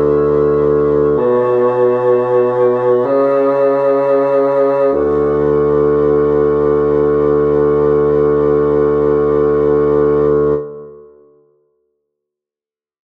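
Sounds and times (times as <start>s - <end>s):
contrabass flute: 0.0s - 11.3s.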